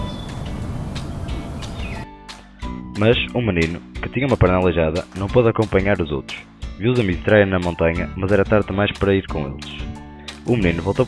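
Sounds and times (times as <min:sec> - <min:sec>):
birds chirping in a land of trees and flowers inside a mountain: 0:00.0 - 0:02.1
speech: 0:03.0 - 0:09.8, 0:10.4 - 0:11.0.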